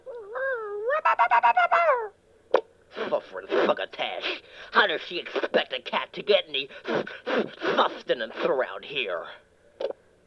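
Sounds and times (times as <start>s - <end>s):
cartoon dog yapping: 0.0s - 2.2s
speech: 3.3s - 9.4s.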